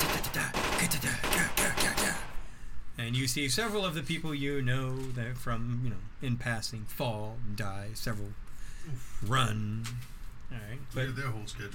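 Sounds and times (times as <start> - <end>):
rapid gunfire sound effect of mobsters shooting around a room: 0.0 - 2.4
speech: 3.1 - 11.7.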